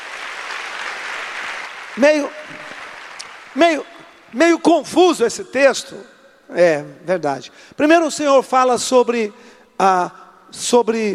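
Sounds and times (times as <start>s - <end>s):
applause: 0.0s - 4.4s
speech: 2.0s - 2.7s, 3.6s - 11.1s.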